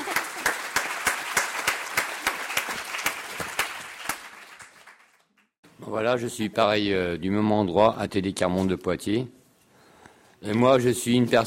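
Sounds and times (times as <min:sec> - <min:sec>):
audience applause: 0:00.0 - 0:05.5
speech: 0:05.9 - 0:09.4, 0:10.4 - 0:11.4.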